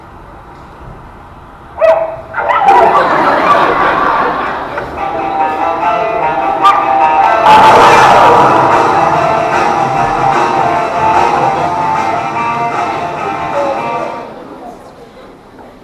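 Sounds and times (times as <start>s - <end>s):
steady noise: 0.0s - 15.8s
small dog barking and yipping: 1.8s - 3.0s
laughter: 2.5s - 5.6s.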